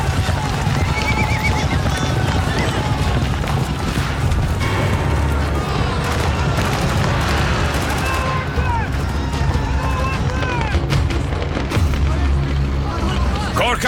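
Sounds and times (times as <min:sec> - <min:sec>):
voices in the chaos: 0:00.0 - 0:13.8
gunfire in a war drama: 0:04.7 - 0:08.6.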